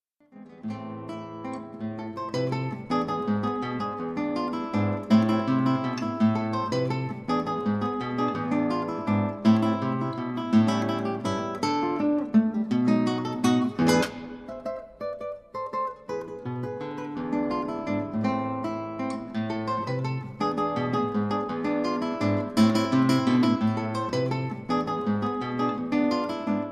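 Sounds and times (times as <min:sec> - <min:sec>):
aire criollo on guitar: 0:00.2 - 0:26.7.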